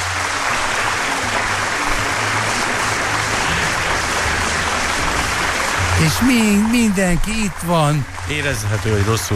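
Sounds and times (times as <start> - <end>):
crowd applauding: 0.0 - 9.3
speech: 6.0 - 9.3.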